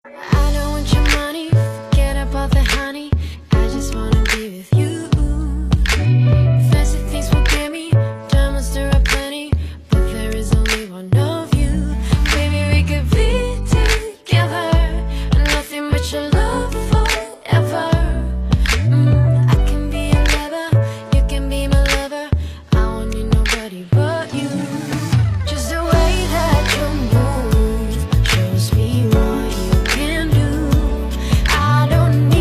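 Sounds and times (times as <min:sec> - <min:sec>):
music: 0:00.0 - 0:32.3.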